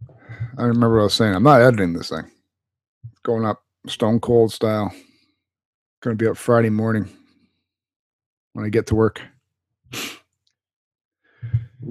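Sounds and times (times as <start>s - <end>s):
speech: 0.6s - 2.4s, 3.2s - 5.1s, 6.0s - 7.2s, 8.5s - 9.3s
breathy lower-pitched nasal sound: 9.9s - 10.2s
sniffling into the microphone: 9.9s - 10.3s.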